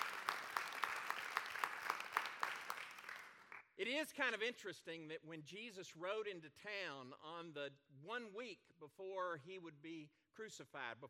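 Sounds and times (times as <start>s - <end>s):
audience applause: 0.0s - 3.6s
speech: 3.8s - 11.0s.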